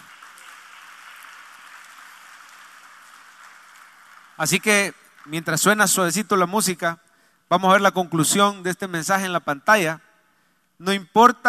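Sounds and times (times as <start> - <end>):
audience applause: 0.0 - 6.0
speech: 4.4 - 10.0, 10.8 - 11.4.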